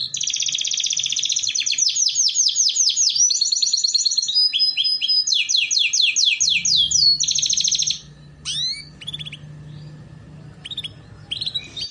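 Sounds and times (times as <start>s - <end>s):
canary song with trills: 0.0s - 11.9s
low hum: 6.5s - 11.9s.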